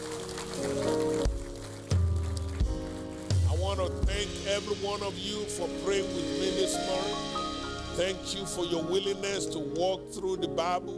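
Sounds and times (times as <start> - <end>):
audience clapping: 0.0 - 4.2
speech: 3.9 - 7.4, 8.0 - 10.9.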